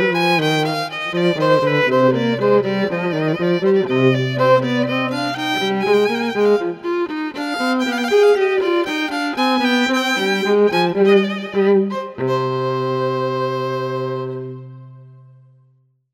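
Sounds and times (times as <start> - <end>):
violin: 0.0 - 15.6.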